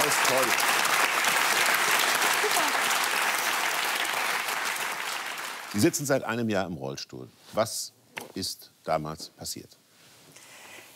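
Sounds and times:
audience clapping: 0:00.0 - 0:06.0
speech: 0:00.3 - 0:00.7, 0:05.7 - 0:09.8.

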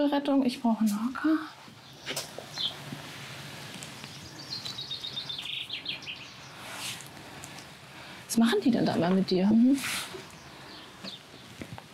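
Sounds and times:
speech: 0:00.0 - 0:02.8, 0:08.3 - 0:10.0
hiss: 0:00.0 - 0:11.9
swallows chirping: 0:01.8 - 0:07.8, 0:10.1 - 0:11.6.

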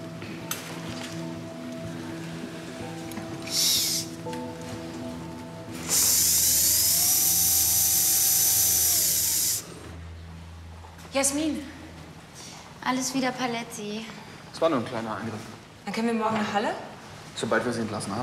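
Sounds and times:
operating-room machine hums and beeps: 0:00.0 - 0:10.7
high-pitched surgical drill boring holes in skull bone: 0:05.7 - 0:10.0
speech: 0:11.2 - 0:11.8, 0:12.9 - 0:18.2.

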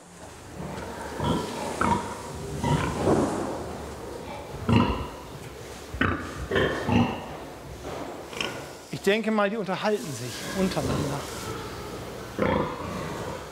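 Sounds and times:
sows grunting in a pig barn: 0:00.5 - 0:05.3, 0:06.0 - 0:07.6, 0:10.3 - 0:13.5
speech: 0:09.0 - 0:11.5.

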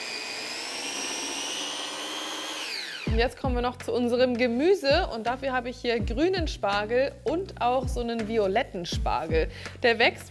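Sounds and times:
blender pureeing blanched spinach into a paste: 0:00.0 - 0:03.1
speech: 0:03.1 - 0:10.2.

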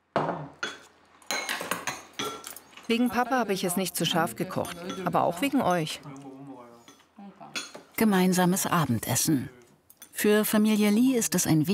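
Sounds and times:
bowls and cutlery clinking while serving family dinner: 0:00.1 - 0:03.2, 0:04.1 - 0:08.0
speech: 0:02.9 - 0:06.3, 0:08.0 - 0:09.6, 0:10.2 - 0:11.7.

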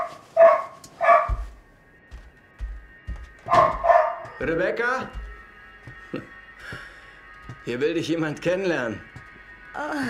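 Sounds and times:
dog barking frantically: 0:00.0 - 0:01.4, 0:03.5 - 0:04.2
speech: 0:04.4 - 0:05.2, 0:06.1 - 0:06.4, 0:07.6 - 0:09.2, 0:09.8 - 0:10.0.

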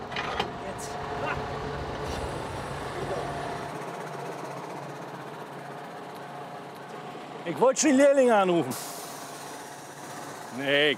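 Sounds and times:
metallic clanks and knocks: 0:00.0 - 0:00.6
tractor engine rumbling: 0:00.0 - 0:10.9
speech: 0:07.5 - 0:09.0, 0:10.6 - 0:10.9.

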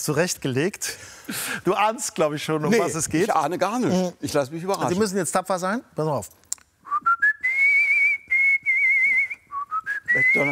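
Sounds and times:
speech: 0:00.0 - 0:07.1, 0:10.2 - 0:10.5
artistic whistling: 0:06.8 - 0:10.5.

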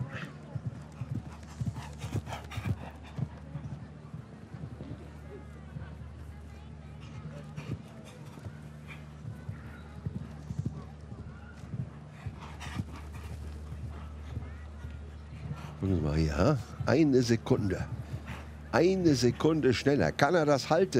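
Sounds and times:
galloping horse hooves: 0:00.0 - 0:20.9
speech: 0:15.8 - 0:18.0, 0:18.8 - 0:20.9.

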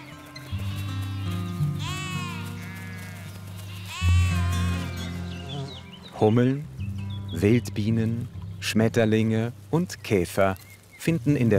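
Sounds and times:
sheep bleating: 0:00.3 - 0:06.4
speech: 0:06.2 - 0:06.7, 0:07.3 - 0:11.5.

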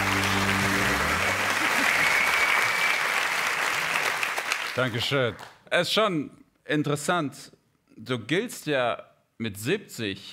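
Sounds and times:
audience applause: 0:00.0 - 0:05.5
speech: 0:04.8 - 0:10.3.

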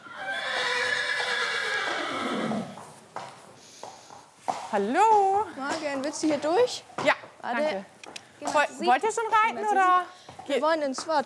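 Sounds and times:
horse neighing in a long loud whinny: 0:00.0 - 0:02.8
speech: 0:04.7 - 0:11.2.

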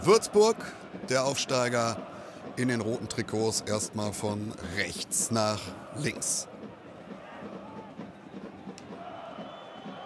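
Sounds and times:
speech: 0:00.0 - 0:06.5
football fans chanting in stadium: 0:00.0 - 0:08.1, 0:08.9 - 0:10.0
crowd whistles: 0:07.4 - 0:10.0.

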